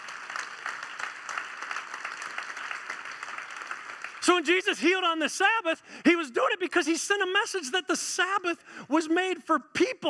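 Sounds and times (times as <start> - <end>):
audience applause: 0.0 - 4.5
speech: 4.2 - 10.0.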